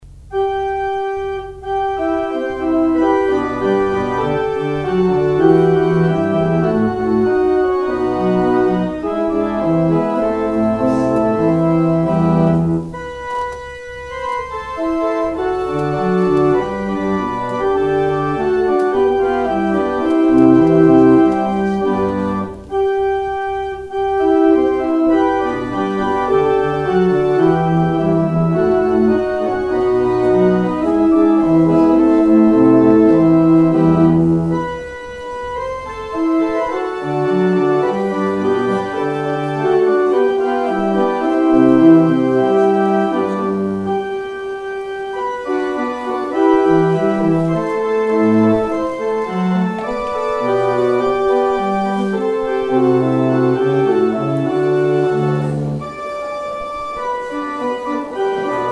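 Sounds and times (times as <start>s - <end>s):
organ outro: 0.0s - 58.7s.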